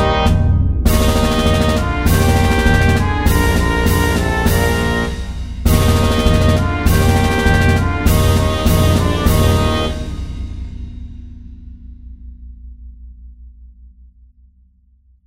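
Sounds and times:
march music at 100: 0.0 - 10.6.

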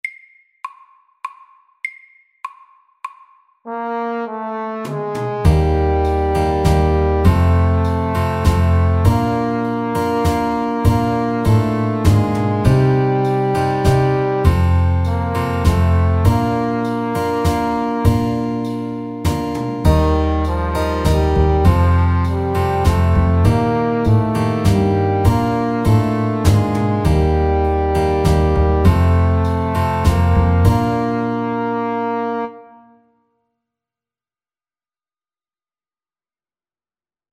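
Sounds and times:
ballad: 3.7 - 32.9.

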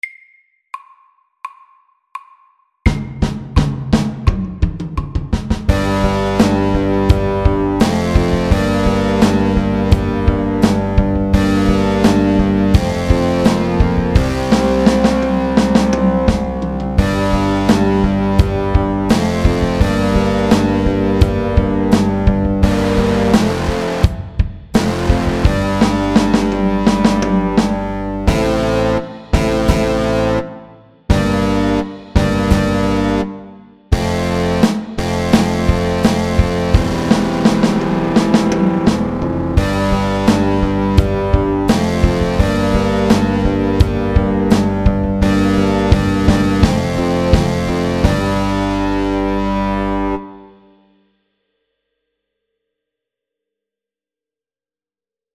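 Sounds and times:
slow heavy metal music: 2.9 - 50.6.

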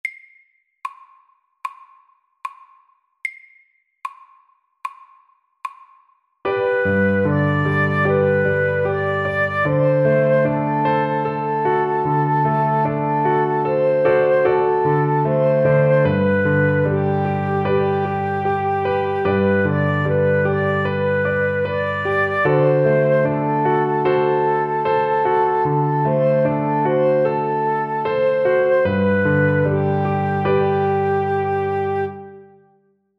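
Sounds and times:
slow Welsh melody: 6.5 - 32.8.

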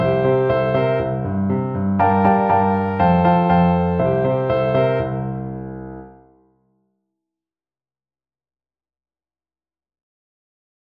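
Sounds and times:
slow honky tonk music: 0.0 - 6.2.

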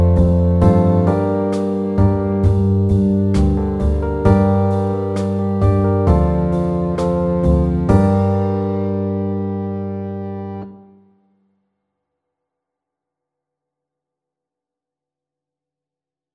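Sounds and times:
medium pop ballad: 0.0 - 10.6.

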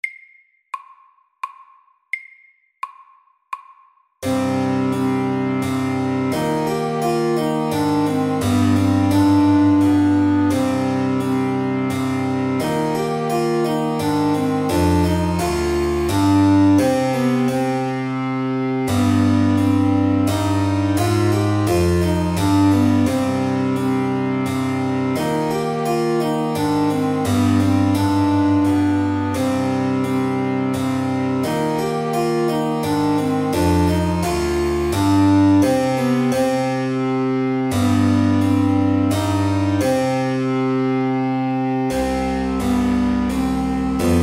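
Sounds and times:
slow minuet: 4.2 - 44.2.

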